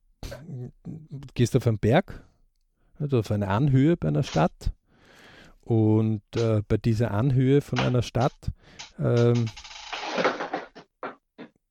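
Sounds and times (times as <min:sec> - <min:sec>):
speech: 0:00.3 - 0:02.3, 0:03.0 - 0:04.8, 0:05.7 - 0:09.6
cat knocking things over: 0:09.2 - 0:11.2.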